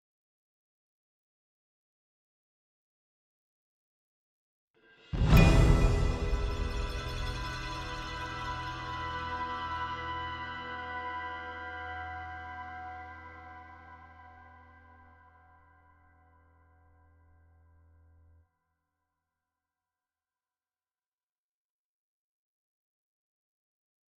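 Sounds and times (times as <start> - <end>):
music outro: 5.2 - 13.5.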